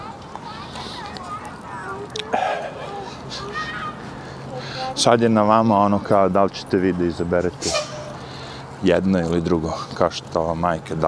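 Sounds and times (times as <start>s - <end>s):
children playing in a crowded muddy park: 0.0s - 5.2s
children's voices and chatter in a park: 0.0s - 10.0s
speech: 5.0s - 7.8s, 8.8s - 11.0s.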